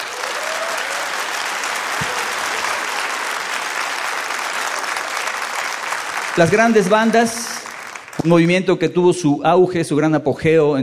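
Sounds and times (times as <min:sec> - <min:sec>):
concert audience applause: 0:00.0 - 0:08.5
speech: 0:06.4 - 0:07.5, 0:08.2 - 0:10.8.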